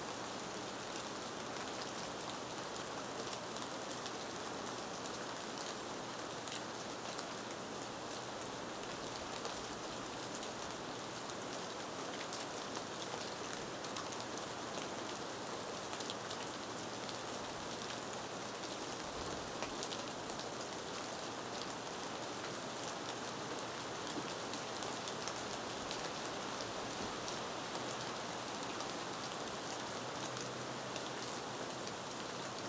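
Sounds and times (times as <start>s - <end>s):
soft rain in a rainforest: 0.0s - 32.6s.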